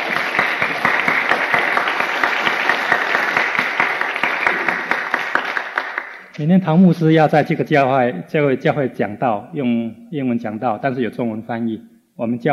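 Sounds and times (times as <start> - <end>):
crowd applauding: 0.0 - 6.4
speech: 6.4 - 12.5.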